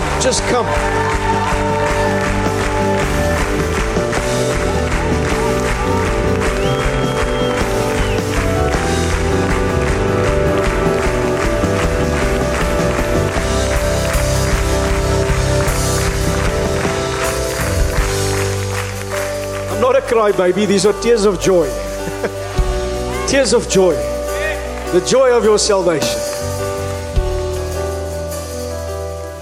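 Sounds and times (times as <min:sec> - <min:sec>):
audience clapping: 0:00.0 - 0:27.6
music playing: 0:00.0 - 0:29.4
speech: 0:00.2 - 0:02.4, 0:19.9 - 0:22.4, 0:23.3 - 0:24.1, 0:24.9 - 0:26.2.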